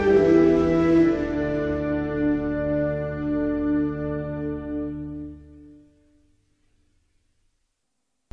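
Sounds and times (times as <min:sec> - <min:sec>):
national anthem: 0:00.0 - 0:05.9.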